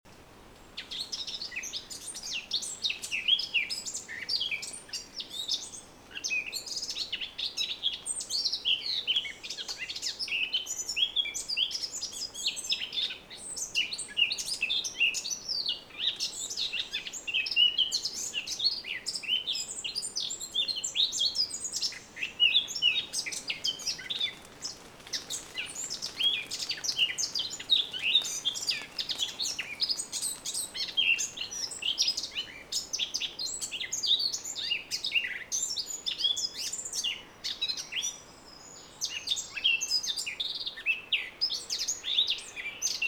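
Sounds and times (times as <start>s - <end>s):
quiet hiss: 0.1s - 43.0s
Eurasian blackcap warbling song: 16.0s - 35.3s.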